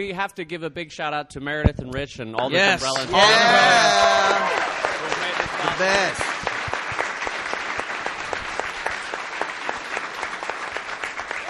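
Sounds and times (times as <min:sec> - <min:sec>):
speech: 0:00.0 - 0:06.4
sustained audience applause: 0:02.6 - 0:11.4.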